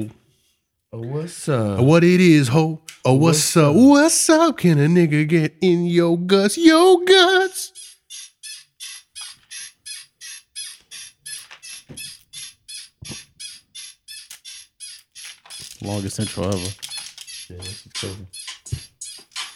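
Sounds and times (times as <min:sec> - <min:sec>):
speech: 0:00.0 - 0:00.2, 0:00.9 - 0:07.8, 0:15.8 - 0:16.8, 0:17.5 - 0:18.4
bed squeaking: 0:06.7 - 0:19.5.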